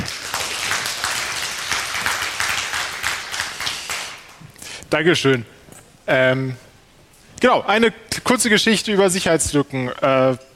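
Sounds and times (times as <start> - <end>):
big round of applause: 0.0 - 4.4
speech: 4.9 - 6.6, 7.4 - 10.5.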